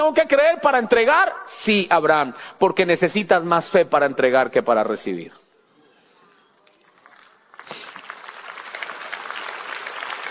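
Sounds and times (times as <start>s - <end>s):
speech: 0.1s - 5.4s
audience applause: 6.9s - 10.2s.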